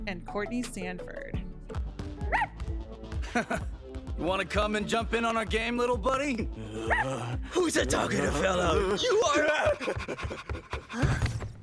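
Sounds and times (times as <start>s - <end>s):
speech: 0.0s - 2.4s, 3.3s - 11.3s
laughter: 3.2s - 3.7s, 6.6s - 11.3s
dog panting: 8.8s - 11.1s.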